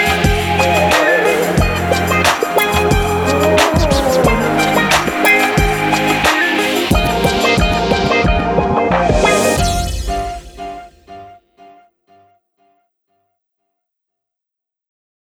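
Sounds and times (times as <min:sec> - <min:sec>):
hip hop podcast intro music: 0:00.0 - 0:11.3.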